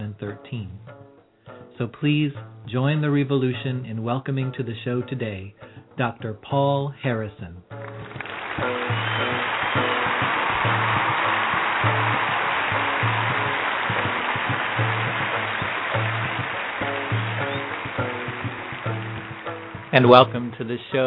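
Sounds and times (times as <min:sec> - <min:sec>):
speech: 0:00.1 - 0:01.0, 0:01.8 - 0:07.6, 0:19.9 - 0:21.0
audience applause: 0:07.8 - 0:20.6
rhythmic tonal music: 0:07.8 - 0:21.0.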